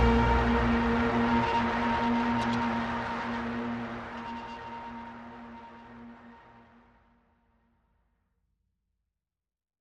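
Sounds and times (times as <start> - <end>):
horror ambience without melody: 0.0 - 6.7.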